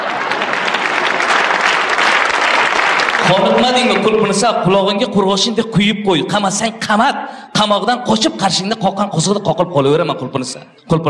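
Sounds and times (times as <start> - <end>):
audience applause: 0.0 - 4.4
speech: 3.3 - 11.0.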